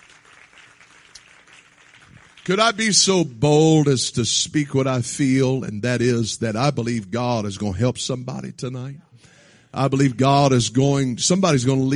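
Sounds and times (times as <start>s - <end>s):
audience clapping hands: 0.0s - 2.9s
speech: 2.4s - 9.1s, 9.7s - 11.9s.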